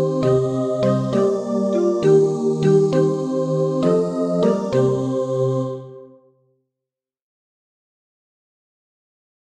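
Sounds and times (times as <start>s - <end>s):
group singing all together: 0.0s - 6.1s.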